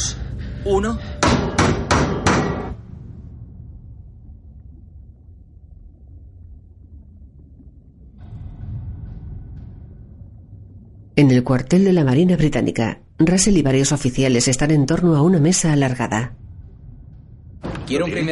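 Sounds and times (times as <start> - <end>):
low rumbling drone: 0.0 - 1.7, 2.7 - 18.3
speech: 0.6 - 1.1, 11.2 - 16.4, 17.9 - 18.3
hammer knocks on submarine hull: 1.2 - 2.8.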